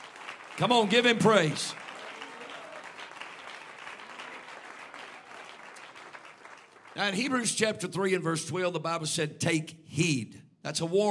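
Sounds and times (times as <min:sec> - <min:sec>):
audience clapping hands: 0:00.0 - 0:07.9
speech: 0:00.6 - 0:01.8, 0:07.0 - 0:11.0.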